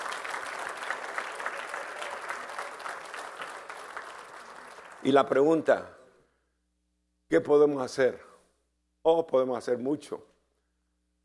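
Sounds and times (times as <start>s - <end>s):
audience applause: 0.0s - 5.4s
speech: 5.0s - 6.0s, 7.3s - 8.3s, 9.0s - 10.3s.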